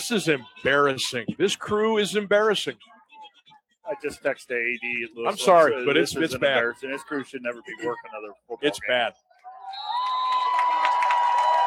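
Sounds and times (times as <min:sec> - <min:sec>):
speech: 0:00.0 - 0:03.0, 0:03.9 - 0:09.2
football stadium crowd giving a Bronx cheer at a Louisville game: 0:09.4 - 0:11.6.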